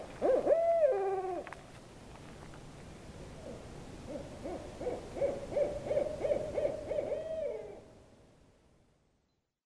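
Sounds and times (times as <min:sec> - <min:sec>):
owl hooting: 0:00.2 - 0:01.5, 0:03.4 - 0:07.9.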